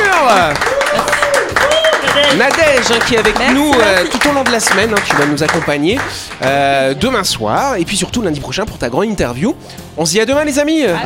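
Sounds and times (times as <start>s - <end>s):
applause: 0.0s - 6.6s
speech: 2.8s - 11.0s.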